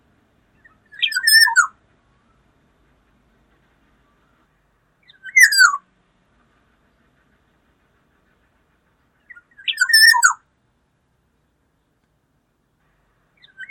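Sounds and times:
Black-naped oriole calls: 0.6 - 1.8, 5.0 - 5.8, 6.9 - 10.4.

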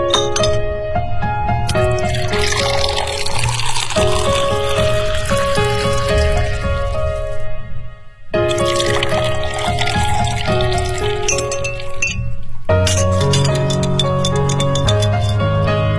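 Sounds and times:
glassware clinking while mixing a cocktail: 0.1 - 0.7, 1.7 - 6.1, 8.5 - 15.7
white rum, blue curaçao, pineapple and lemon juice pouring: 1.7 - 7.5, 8.4 - 15.8.

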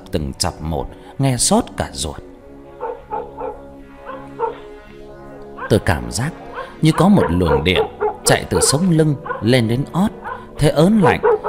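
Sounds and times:
speech: 0.1 - 2.3, 5.7 - 11.4
village dogs howling and barking: 2.4 - 11.4.

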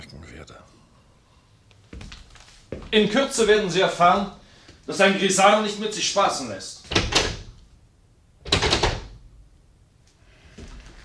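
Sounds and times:
speech: 0.0 - 0.8, 2.9 - 7.0
door being shut: 6.9 - 7.6, 8.4 - 9.2.

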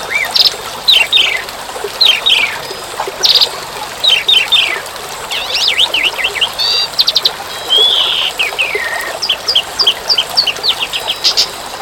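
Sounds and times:
bird song: 0.0 - 11.8.

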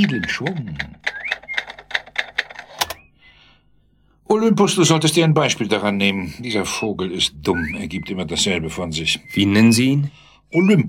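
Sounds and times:
speech: 0.0 - 0.9, 4.4 - 10.8
typewriter keys clacking: 0.0 - 3.0.

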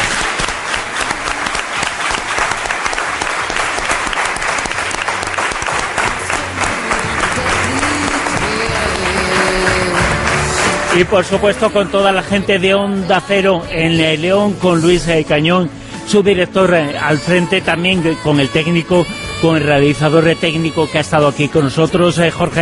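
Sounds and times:
large audience applauding in the Salón de los Reyes at San Marcelo in León: 0.0 - 12.6
speech: 11.0 - 22.6.

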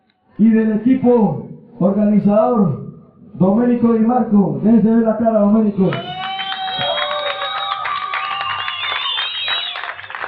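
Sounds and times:
speech: 0.4 - 2.8, 3.4 - 6.1
audience applause: 5.9 - 10.2.

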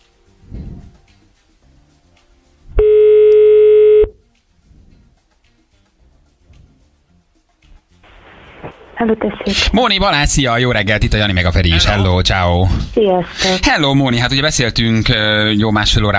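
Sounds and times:
quiet line noise and hiss: 0.0 - 13.9
telephone ringing tone: 2.8 - 4.2
speech: 9.0 - 16.1.

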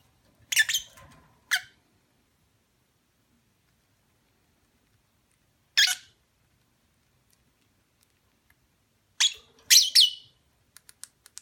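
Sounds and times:
lovebird mating call chirps: 0.5 - 1.8, 9.2 - 10.4.

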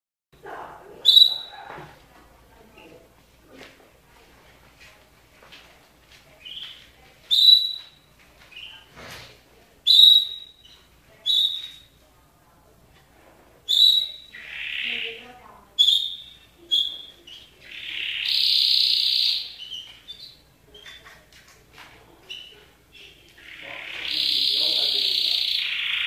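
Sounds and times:
canary song with fast rolling trill: 0.6 - 1.7, 6.4 - 8.9, 9.8 - 12.0, 13.6 - 21.2, 22.2 - 26.0.

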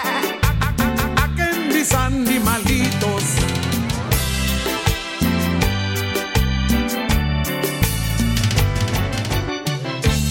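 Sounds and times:
voice imitating a goat's bleat: 0.0 - 1.4
steady rhythmic musical backing with pulsing beats: 0.0 - 10.2.

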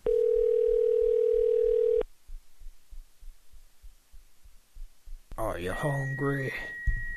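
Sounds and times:
phone line tone: 0.0 - 2.0, 5.8 - 7.1
soft regular low thumps: 2.0 - 7.1
speech: 5.6 - 6.8.

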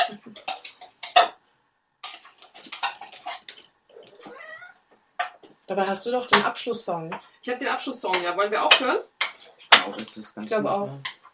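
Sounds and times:
cats meowing while being fed: 3.9 - 5.0
speech: 5.7 - 9.1, 9.8 - 11.1.

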